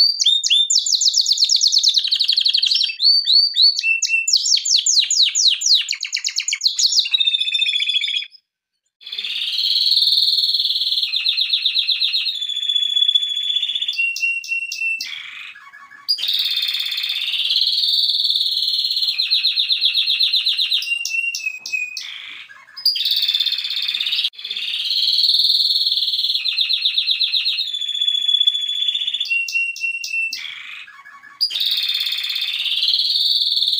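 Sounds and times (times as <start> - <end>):
canary singing: 0.0 - 33.7.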